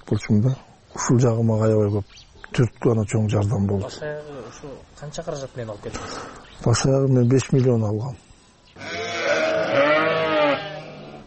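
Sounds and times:
speech: 0.1 - 8.9
Edilbay breed sheep bleating in a farmyard: 8.8 - 11.2.

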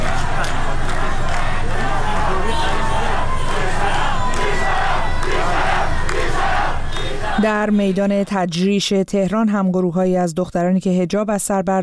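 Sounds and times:
large crowd of protesters chanting slogans: 0.0 - 8.0
speech: 7.4 - 11.8.

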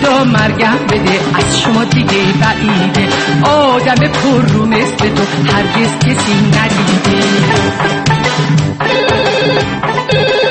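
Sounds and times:
speech: 0.2 - 9.0
telephone ringing: 8.8 - 10.4.

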